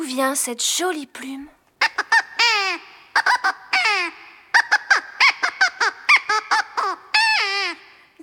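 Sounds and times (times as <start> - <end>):
speech: 0.1 - 1.6
crow cawing hoarsely: 1.8 - 8.1.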